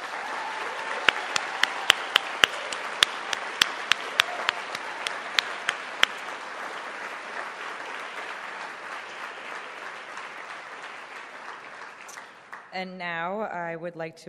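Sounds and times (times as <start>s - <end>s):
audience applause: 0.0s - 12.7s
speech: 12.8s - 14.2s.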